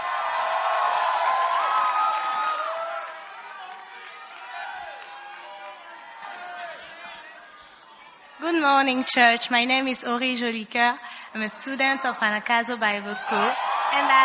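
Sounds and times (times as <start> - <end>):
church congregation applauding and cheering: 0.0 - 8.4, 13.1 - 14.2
speech: 8.6 - 14.2.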